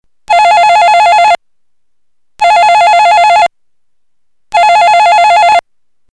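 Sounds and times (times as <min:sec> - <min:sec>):
mono telephone: 0:00.3 - 0:01.4, 0:02.4 - 0:03.5, 0:04.5 - 0:05.6.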